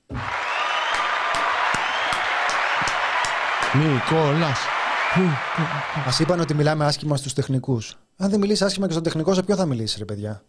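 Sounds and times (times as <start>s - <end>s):
audience applause: 0.0s - 7.0s
speech: 3.7s - 10.4s.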